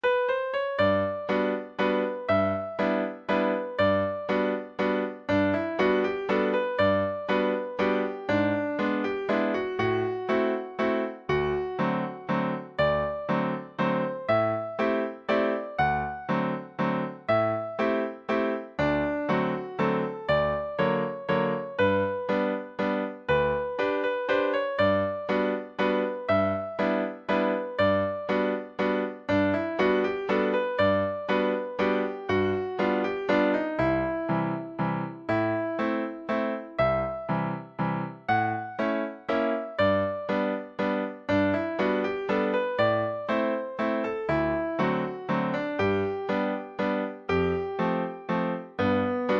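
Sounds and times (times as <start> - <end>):
waltz music: 0.1 - 49.3.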